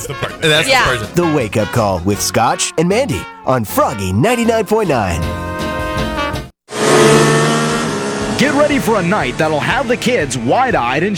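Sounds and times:
speech: 0.0s - 5.7s, 8.4s - 11.1s
fast race car engines roaring at the Fix-It-Forward Speedway: 6.7s - 11.1s.

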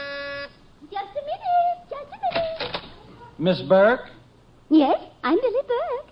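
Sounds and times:
door buzzer: 0.0s - 0.6s
speech: 3.4s - 6.0s.

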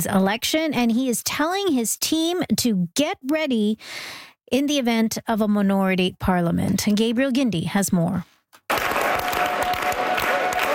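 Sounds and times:
speech: 0.0s - 8.3s
crowd clapping at a party gathering: 8.7s - 10.7s.

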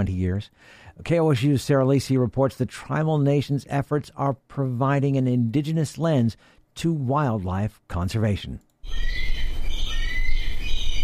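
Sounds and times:
speech: 0.0s - 9.4s
bald eagles calling in a raptor rehabilitation enclosure at the Gray Snow Eagle House: 8.8s - 11.0s.

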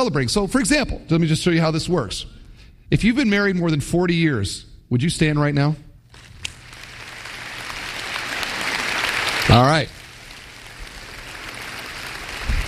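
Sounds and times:
speech: 0.0s - 5.8s, 9.5s - 10.0s
audience clapping: 6.1s - 12.6s.

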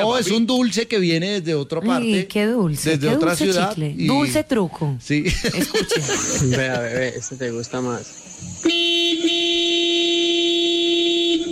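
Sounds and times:
speech: 0.0s - 8.8s
laughter: 5.2s - 8.0s
loud long car horn: 8.6s - 11.5s.

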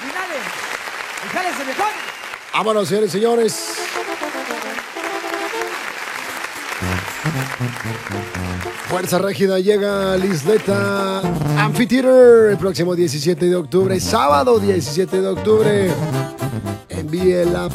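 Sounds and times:
excited sing-song male announcer: 0.0s - 4.6s, 8.7s - 17.7s
audience applause: 0.0s - 11.8s
speech: 1.2s - 4.0s, 6.8s - 17.7s
brassy musical notes: 3.4s - 17.7s.

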